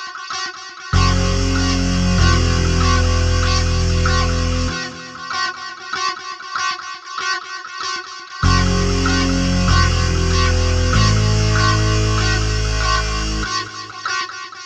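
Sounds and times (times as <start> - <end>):
tense music: 1.0 - 5.3, 8.4 - 14.0.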